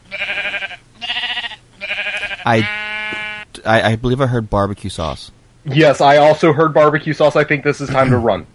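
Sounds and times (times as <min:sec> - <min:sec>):
sheep bleating: 0:00.0 - 0:03.6
speech: 0:02.4 - 0:02.8, 0:03.6 - 0:08.5.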